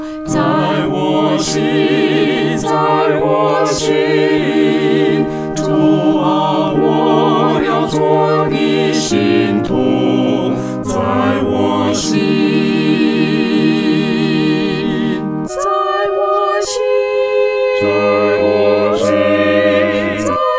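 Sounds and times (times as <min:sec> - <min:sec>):
four-part choir singing: 0:00.2 - 0:20.5.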